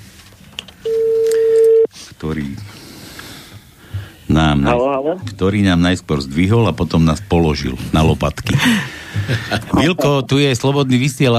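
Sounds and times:
telephone tone: 0.8 - 1.9
speech: 4.4 - 11.3
laughter: 8.5 - 10.6.

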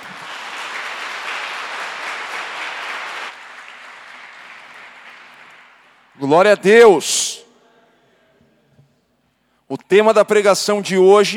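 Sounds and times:
audience applause: 0.0 - 6.1
speech: 6.2 - 7.4, 9.7 - 11.3.

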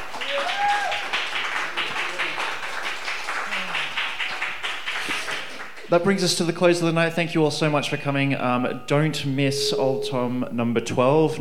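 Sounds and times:
audience applause: 0.0 - 5.9
whoops and cheering voices: 0.1 - 1.3
speech: 5.9 - 11.3.

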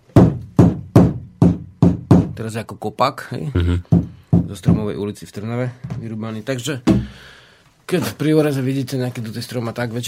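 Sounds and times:
knocking on a maple wood piece: 0.2 - 2.4, 3.8 - 4.9, 6.8 - 7.2
speech: 2.4 - 10.0.

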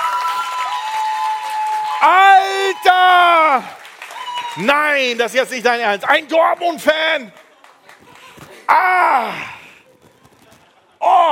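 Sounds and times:
crowd applause: 0.0 - 5.8, 7.1 - 9.9
speech: 2.0 - 3.8, 4.6 - 7.4, 8.7 - 9.5.

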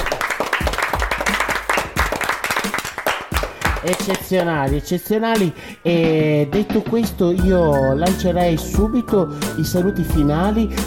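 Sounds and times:
audience applause: 0.0 - 4.2
speech: 3.8 - 10.8.

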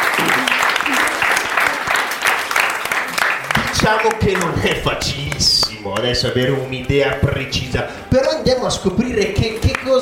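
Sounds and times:
applause at a school radio show: 0.0 - 5.8
speech: 3.9 - 10.0.

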